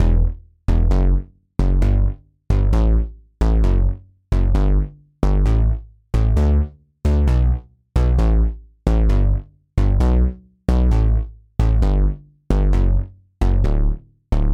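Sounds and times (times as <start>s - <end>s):
poly bass synth: 0.0s - 14.5s.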